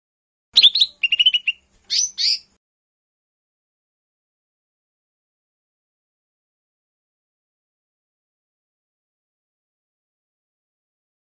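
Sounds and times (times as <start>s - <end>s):
Lesser green leafbird song with chirps and buzzy trills: 0.6s - 2.6s.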